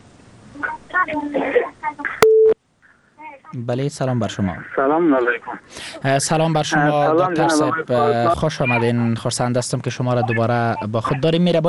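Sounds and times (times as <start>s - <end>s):
speech: 1.0s - 2.2s, 3.5s - 11.6s
short steady electronic telephone tone: 2.2s - 2.6s.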